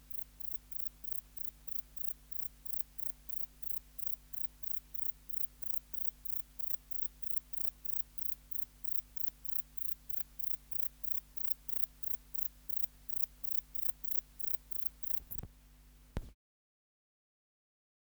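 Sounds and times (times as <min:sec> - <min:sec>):
grey bush-cricket chirping: 0:00.0 - 0:15.5.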